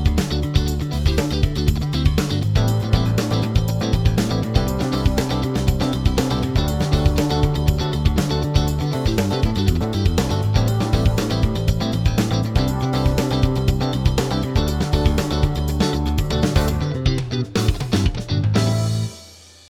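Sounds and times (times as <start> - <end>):
funk guitar in Dorian mode: 0.0 - 19.2.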